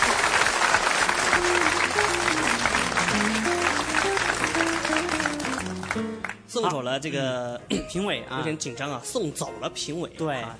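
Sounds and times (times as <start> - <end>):
audience applause: 0.0 - 6.4
speech: 6.5 - 10.5.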